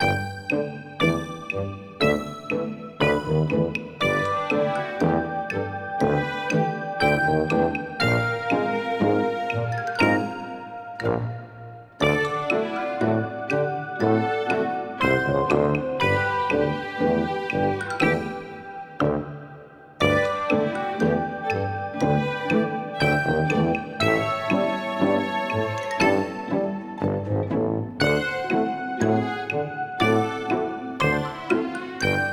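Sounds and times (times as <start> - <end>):
drunk ambient music: 0.0 - 32.3.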